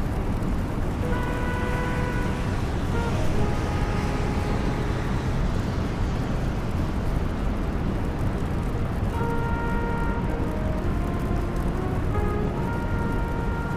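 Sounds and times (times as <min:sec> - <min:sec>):
tuneful horn: 0:00.0 - 0:05.6, 0:09.1 - 0:13.7
traffic roar on a rainy New York street: 0:00.0 - 0:13.7.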